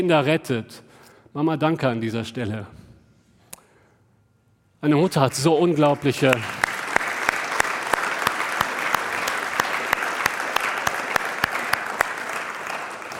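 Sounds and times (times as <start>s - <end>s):
speech: 0.0s - 2.8s, 4.8s - 6.6s
audience applause: 5.8s - 13.1s.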